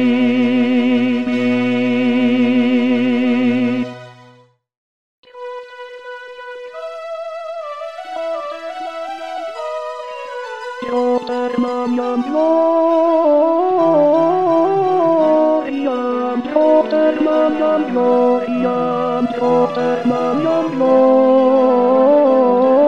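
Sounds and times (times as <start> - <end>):
tenor singing: 0.0 - 4.0, 10.8 - 22.8.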